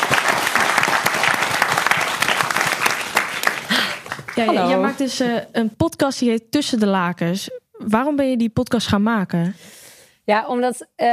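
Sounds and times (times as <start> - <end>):
audience applause for guest: 0.0 - 5.0
speech: 4.4 - 11.1.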